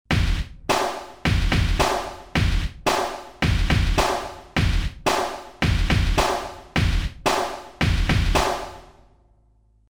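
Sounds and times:
Mooer synth drum patch industry kick: 0:00.0 - 0:09.0.

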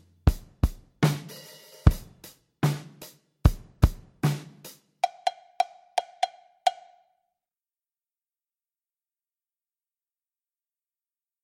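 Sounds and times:
dry chrome drum kit: 0:00.0 - 0:06.9.

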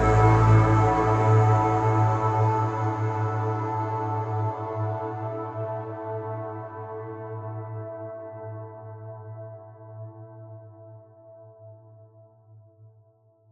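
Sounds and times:
Nonlinear Labs C15 ambient synthesizer: 0:00.0 - 0:08.4.

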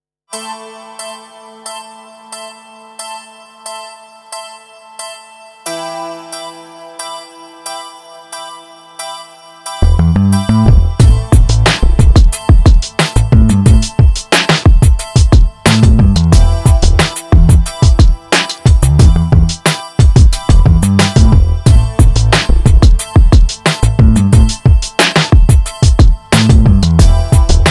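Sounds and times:
beats: 0:10.6 - 0:27.6.

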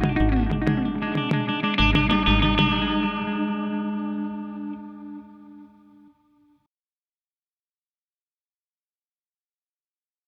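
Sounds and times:
MXR Carbon Copy delay pedal effect: 0:00.0 - 0:06.2.

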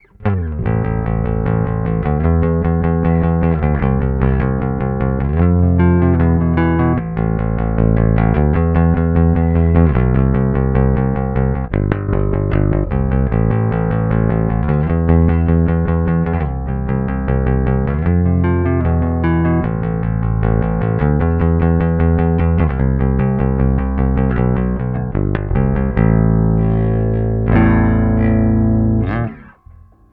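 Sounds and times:
rock pick: 0:00.0 - 0:30.1.

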